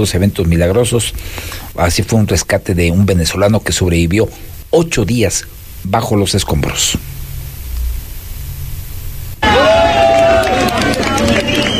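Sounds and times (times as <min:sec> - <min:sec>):
speech: 0:00.0 - 0:07.1
rescue workers cheering and shouting with joy: 0:09.4 - 0:11.7.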